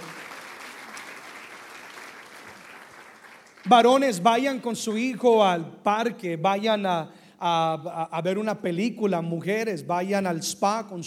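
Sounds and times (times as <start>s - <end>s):
audience applauding: 0.0s - 4.0s
speech: 3.6s - 11.0s.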